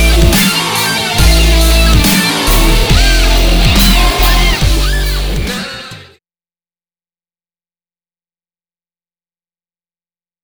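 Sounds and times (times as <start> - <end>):
guitar: 0.0 - 6.2.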